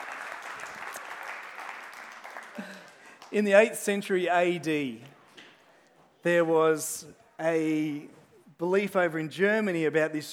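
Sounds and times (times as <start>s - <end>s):
round of applause: 0.0s - 3.6s
speech: 3.3s - 5.1s, 6.2s - 10.3s.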